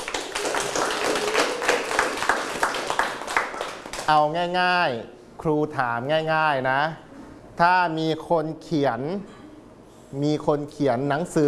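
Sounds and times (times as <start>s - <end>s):
class clapping hands: 0.0s - 4.2s
speech: 4.1s - 7.0s, 7.6s - 9.4s, 10.1s - 11.4s.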